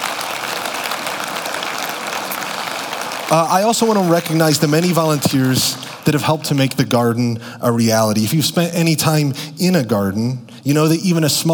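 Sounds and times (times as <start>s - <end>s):
round of applause: 0.0s - 7.2s
speech: 3.3s - 11.5s.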